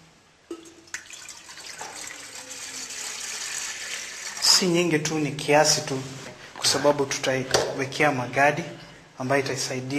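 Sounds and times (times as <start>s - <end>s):
water poured into a cooking pot during food preparation: 0.5s - 4.8s
speech: 4.6s - 9.9s.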